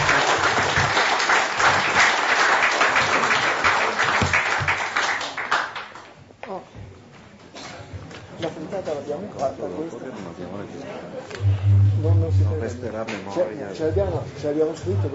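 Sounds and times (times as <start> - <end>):
audience applause: 0.0 - 6.0
speech: 11.6 - 15.1.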